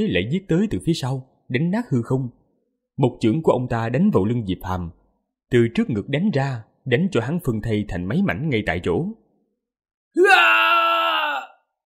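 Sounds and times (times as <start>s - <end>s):
speech: 0.0s - 2.4s, 3.0s - 9.2s, 10.1s - 10.7s
man screaming in anguish: 10.2s - 11.7s.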